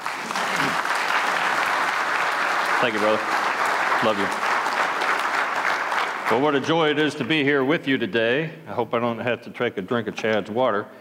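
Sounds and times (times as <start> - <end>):
audience applause welcoming a guest speaker at a ministry gathering: 0.0 - 7.2
speech: 2.8 - 3.4, 4.0 - 4.4, 6.3 - 10.9.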